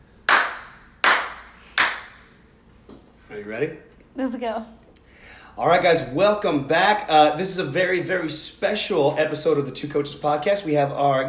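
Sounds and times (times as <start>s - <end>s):
clapping: 0.2s - 2.3s
speech: 3.4s - 4.8s, 5.6s - 11.2s.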